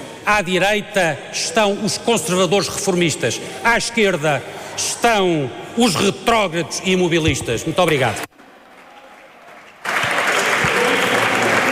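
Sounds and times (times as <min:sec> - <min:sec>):
speech: 0:00.3 - 0:08.3
applause in a parliament chamber: 0:08.4 - 0:11.7.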